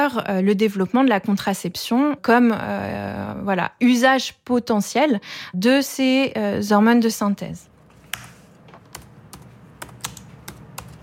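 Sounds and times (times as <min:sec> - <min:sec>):
speech: 0:00.0 - 0:07.7
typing on a computer keyboard: 0:08.9 - 0:11.0.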